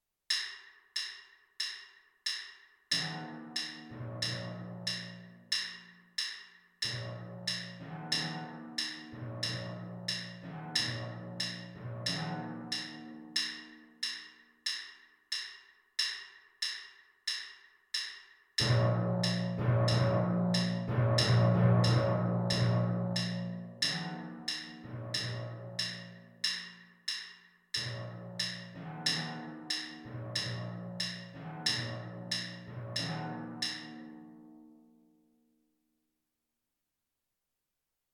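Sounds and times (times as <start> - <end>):
timpani: 3.0 - 5.8, 6.8 - 13.8, 18.6 - 26.8, 27.8 - 34.3.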